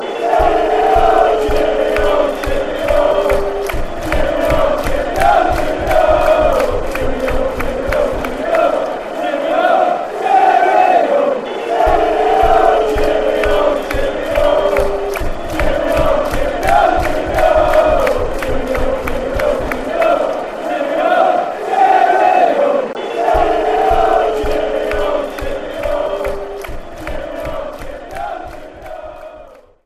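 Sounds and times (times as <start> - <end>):
fans chanting: 0.0 - 29.8.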